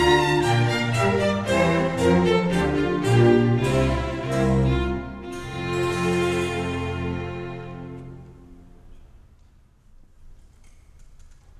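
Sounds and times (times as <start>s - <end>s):
minuet: 0.0s - 8.4s.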